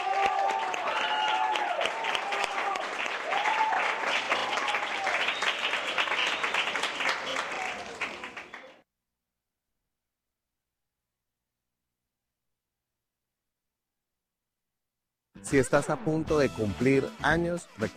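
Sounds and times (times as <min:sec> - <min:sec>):
audience applause: 0:00.0 - 0:08.8
speech: 0:15.5 - 0:17.9.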